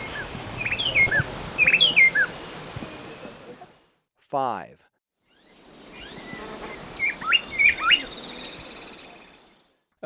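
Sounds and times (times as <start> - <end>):
Bar-winged Wood-Wren whistled song: 0.0 - 3.2, 5.3 - 9.7
background hiss: 0.0 - 4.0, 5.3 - 9.7
speech: 4.3 - 4.8.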